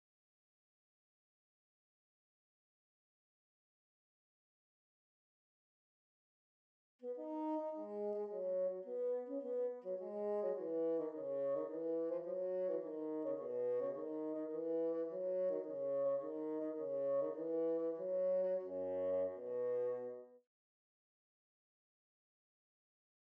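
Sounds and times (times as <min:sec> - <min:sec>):
bassoon: 0:07.0 - 0:20.4.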